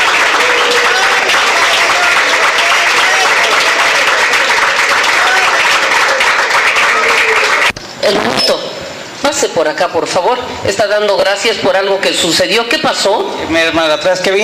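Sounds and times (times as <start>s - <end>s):
audience applause: 0.0s - 7.8s
speech: 9.4s - 14.4s.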